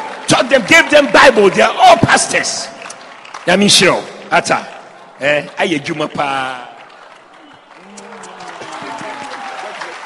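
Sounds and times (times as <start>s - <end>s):
audience applause: 0.0s - 10.0s
speech: 0.5s - 2.8s, 3.4s - 6.7s.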